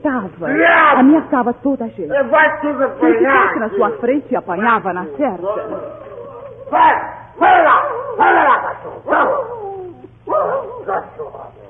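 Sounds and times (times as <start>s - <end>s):
speech: 0.0s - 6.1s, 6.7s - 9.6s, 10.3s - 11.6s
mongrel dog barking: 6.8s - 9.7s, 10.3s - 11.6s.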